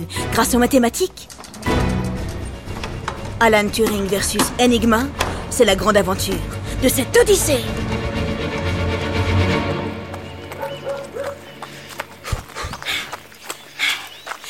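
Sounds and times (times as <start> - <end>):
speech: 0.0 - 1.8, 3.4 - 8.0
running footsteps: 0.7 - 14.4
regular panting breaths: 10.6 - 14.4.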